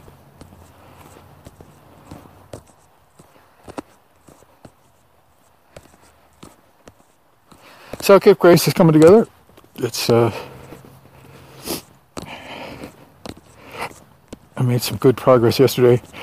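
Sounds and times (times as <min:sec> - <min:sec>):
footsteps of a person walking outdoors: 0:00.0 - 0:16.2
speech: 0:08.0 - 0:10.5, 0:14.7 - 0:16.2.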